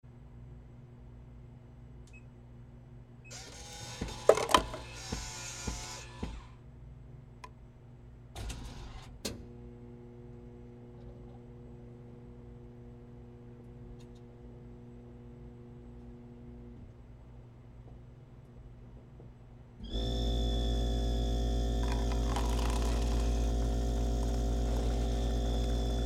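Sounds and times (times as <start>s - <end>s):
coffee vending machine: 3.5s - 5.4s, 19.9s - 26.0s.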